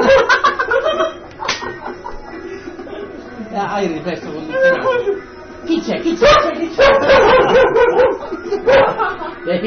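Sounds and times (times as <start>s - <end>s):
laughter: 0.0s - 3.2s, 4.5s - 5.3s, 6.8s - 9.6s
speech: 3.8s - 4.8s, 5.8s - 8.8s, 9.4s - 9.6s
dog barking and yipping: 6.2s - 9.1s.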